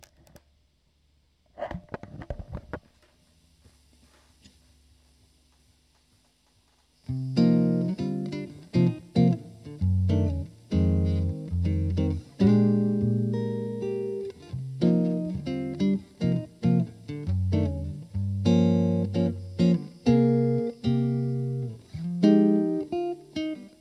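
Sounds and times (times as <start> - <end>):
guitar chord melody: 7.1 - 23.7.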